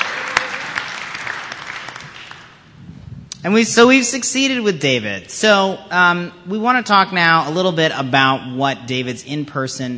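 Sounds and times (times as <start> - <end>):
audience applause: 0.0 - 2.6
speech: 3.4 - 9.9.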